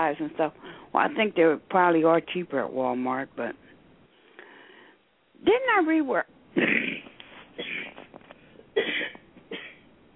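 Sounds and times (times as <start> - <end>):
speech: 0.0 - 3.6, 5.4 - 6.9
person coughing: 6.6 - 8.0, 8.8 - 9.8.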